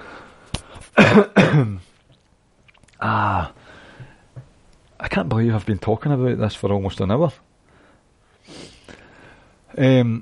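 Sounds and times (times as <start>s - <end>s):
person having a coughing fit: 1.0s - 1.9s
speech: 1.1s - 1.9s, 5.2s - 7.4s, 9.8s - 10.2s.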